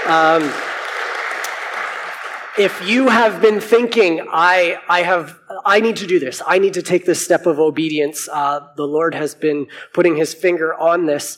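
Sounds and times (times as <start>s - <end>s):
speech: 0.0s - 0.6s, 2.6s - 11.3s
church congregation applauding: 0.0s - 4.1s.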